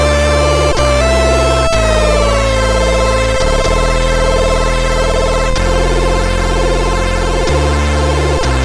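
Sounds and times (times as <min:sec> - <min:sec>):
MOS6581R2 SID sound chip synthesizer tone: 0:00.0 - 0:08.5.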